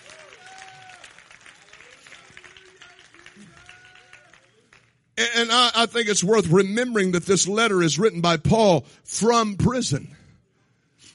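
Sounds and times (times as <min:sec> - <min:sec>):
audience clapping hands: 0:00.0 - 0:05.2
speech: 0:05.2 - 0:10.2.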